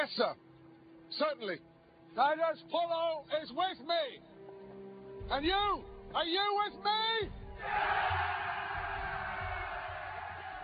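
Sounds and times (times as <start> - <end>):
speech: 0.0 - 0.5, 1.1 - 4.3, 5.3 - 8.6
triumphant shouts of Roman crowd: 7.6 - 10.6.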